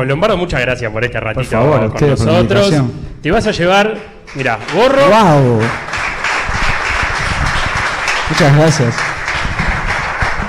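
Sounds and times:
speech: 0.0 - 5.9, 8.3 - 9.1
audience applause: 4.3 - 10.4.

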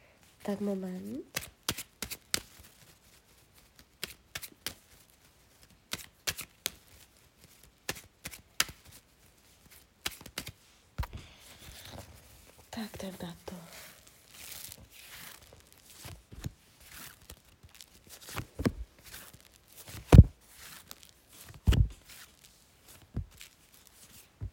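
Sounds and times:
soft rustle of tarot cards: 0.0 - 24.5
speech: 0.4 - 1.4, 13.0 - 13.6
tarot cards being shuffled: 1.0 - 24.5.

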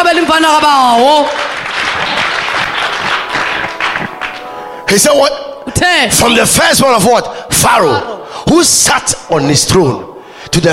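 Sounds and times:
congregation clapping during a worship service: 0.0 - 4.6
speech: 0.2 - 2.1, 4.9 - 10.7.

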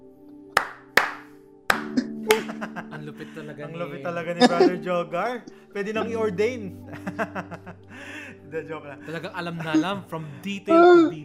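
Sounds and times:
slow deliberate hand claps: 0.5 - 2.8
laughter: 2.3 - 5.0, 5.8 - 8.4, 9.0 - 11.2
speech: 3.1 - 11.2.

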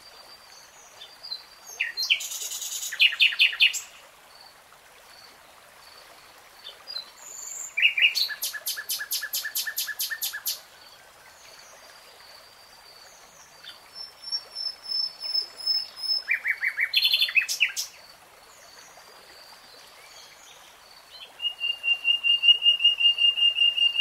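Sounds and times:
nightingale song: 7.4 - 10.6, 13.6 - 18.0, 21.1 - 23.9.

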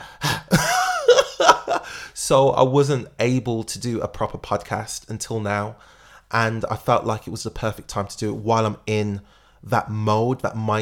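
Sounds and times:
person imitating heavy puffing and panting: 0.0 - 0.6, 1.8 - 2.2
speech: 2.3 - 10.7.

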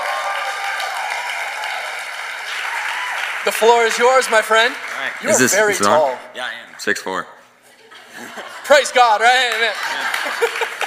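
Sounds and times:
audience applause: 0.0 - 6.1, 9.3 - 10.8
speech: 3.4 - 7.3, 8.2 - 10.7
laughter: 7.7 - 10.8.

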